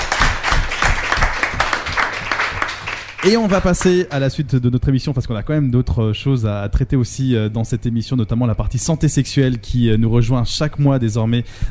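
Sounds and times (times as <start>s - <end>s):
audience applause: 0.0s - 4.0s
speech: 3.2s - 11.6s.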